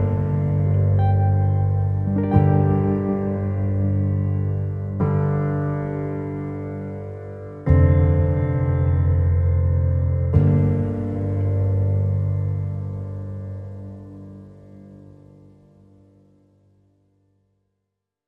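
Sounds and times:
pianos playing: 0.0s - 14.5s.

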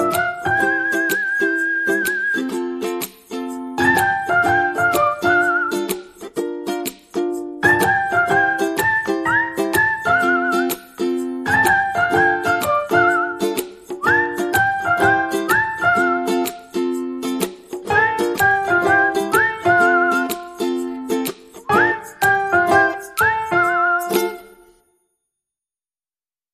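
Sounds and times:
ukulele: 0.0s - 24.9s
percussion: 0.0s - 25.0s
melody: 3.2s - 5.7s, 7.6s - 13.5s, 14.1s - 24.8s.

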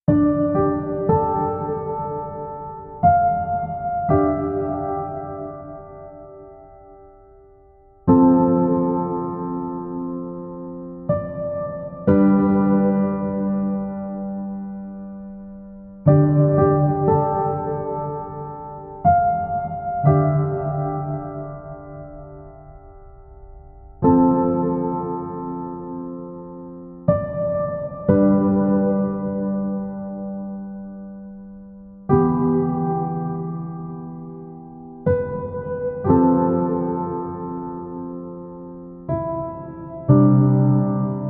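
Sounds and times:
piano music: 0.0s - 41.2s.

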